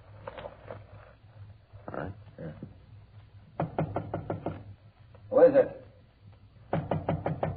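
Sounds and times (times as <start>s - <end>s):
rapid knocking on an apartment door: 3.5s - 4.7s, 6.7s - 7.5s
man speaking: 5.3s - 6.0s.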